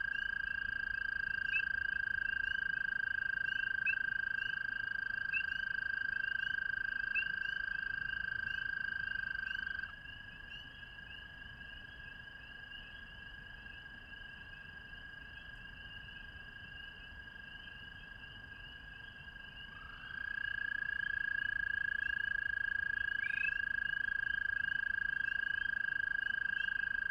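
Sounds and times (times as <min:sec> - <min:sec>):
American toad calling: 0:00.0 - 0:10.8, 0:19.6 - 0:27.0
spring peepers calling: 0:00.0 - 0:27.0.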